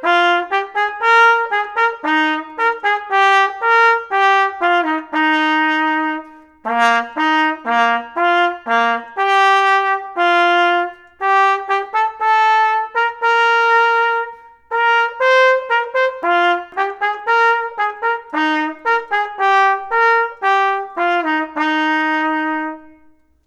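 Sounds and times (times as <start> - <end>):
solo F horn playing a hornpipe: 0.0 - 23.4.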